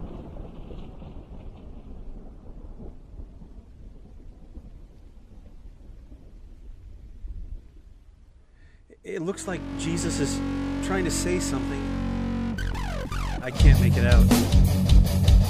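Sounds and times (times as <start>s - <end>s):
distant rumbling thunder: 0.0s - 7.8s
speech: 9.0s - 11.9s, 13.4s - 15.4s.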